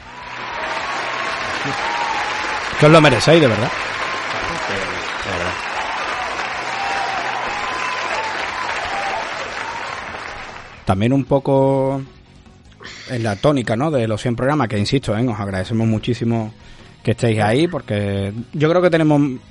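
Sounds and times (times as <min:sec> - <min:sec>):
applause sound effect: 0:00.0 - 0:10.9
speech: 0:01.6 - 0:02.0, 0:02.8 - 0:04.0, 0:10.9 - 0:12.2, 0:13.1 - 0:19.4.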